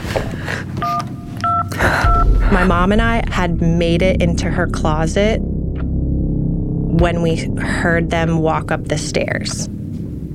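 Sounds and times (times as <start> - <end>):
electronic keypad beeps from a phone being dialed: 0.8 - 2.2
low rumble: 1.4 - 10.3
speech: 2.6 - 5.5, 6.9 - 9.8.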